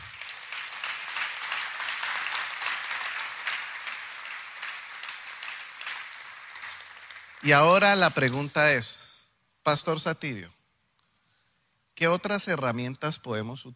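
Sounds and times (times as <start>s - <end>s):
audience applause: 0.0s - 8.3s
speech: 7.4s - 9.0s, 9.6s - 10.6s, 12.0s - 13.7s.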